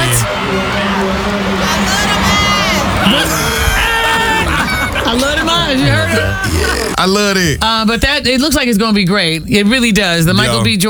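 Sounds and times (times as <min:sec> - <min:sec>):
theatre audience cheering for actor Michael Ealy's casting announcement: 0:00.0 - 0:07.0
laughter: 0:00.0 - 0:10.8
speech: 0:05.7 - 0:10.8.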